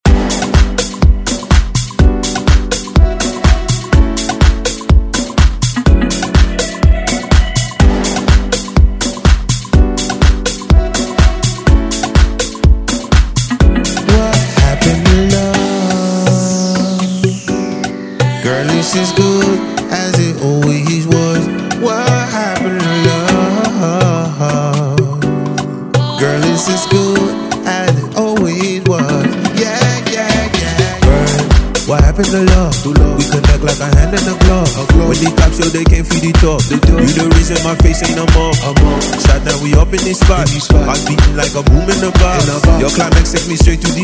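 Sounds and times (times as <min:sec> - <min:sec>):
Afro dance music: 0:00.0 - 0:44.0.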